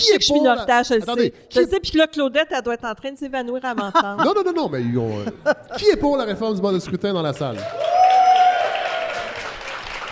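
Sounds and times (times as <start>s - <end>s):
speech: 0.0s - 8.0s
laughter: 3.8s - 6.2s
audience applause in a hall: 7.4s - 10.1s.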